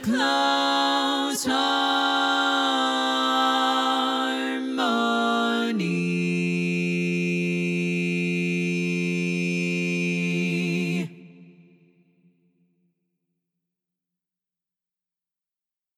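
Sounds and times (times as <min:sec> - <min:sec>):
bass part of SSAA choir singing: 0:00.0 - 0:11.5.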